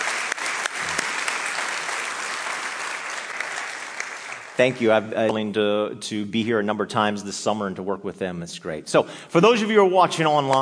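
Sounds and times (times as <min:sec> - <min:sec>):
round of applause: 0:00.0 - 0:04.8
speech: 0:04.6 - 0:10.6.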